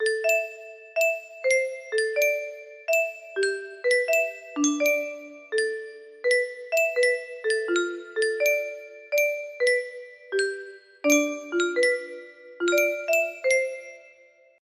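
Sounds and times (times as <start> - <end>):
cheerful tune: 0.0 - 14.3.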